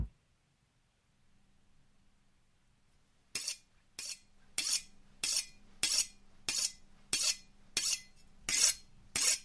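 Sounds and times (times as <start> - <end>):
knife being sharpened: 3.3 - 9.4.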